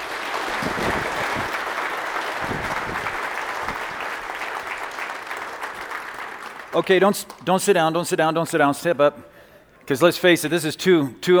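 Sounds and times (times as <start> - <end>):
audience applause at a Calvary Chapel service welcoming a speaker: 0.0 - 7.4
speech: 6.8 - 11.3.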